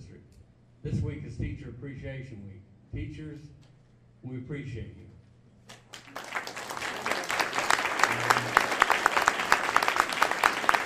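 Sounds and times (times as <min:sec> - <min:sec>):
speech: 0:00.8 - 0:05.2
audience clapping: 0:05.7 - 0:10.8.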